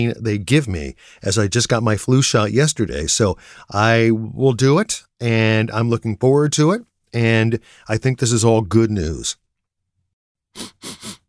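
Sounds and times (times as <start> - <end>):
speech: 0.0 - 9.4, 10.6 - 10.9
person sniffing: 10.6 - 11.2.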